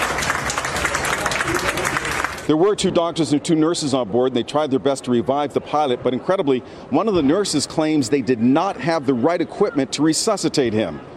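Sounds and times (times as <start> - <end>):
crowd of passengers applauding: 0.0 - 2.5
speech: 2.5 - 11.1.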